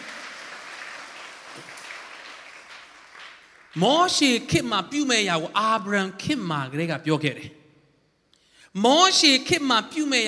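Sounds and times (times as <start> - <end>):
congregation clapping in praise of God during a church sermon: 0.0 - 4.8
speech: 3.7 - 7.6, 8.7 - 10.2.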